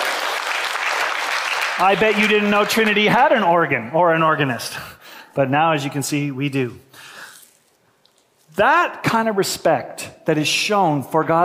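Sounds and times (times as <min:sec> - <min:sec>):
crowd applause: 0:00.0 - 0:03.0
speech: 0:01.8 - 0:06.9, 0:08.6 - 0:11.4.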